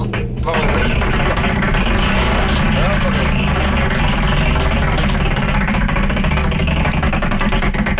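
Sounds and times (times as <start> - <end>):
prize wheel with slots spinning and ticking: 0.0 - 7.9.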